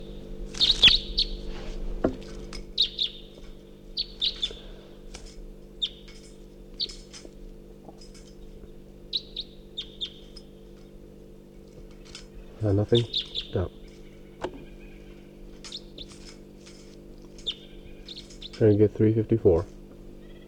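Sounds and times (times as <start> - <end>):
wild bird chirping while flying around: 0.0 - 1.5, 2.8 - 3.4, 4.0 - 4.8, 5.8 - 7.2, 8.3 - 10.6, 12.0 - 16.4, 17.3 - 19.0
low hum: 0.0 - 20.4
speech: 12.7 - 13.8, 18.6 - 19.8.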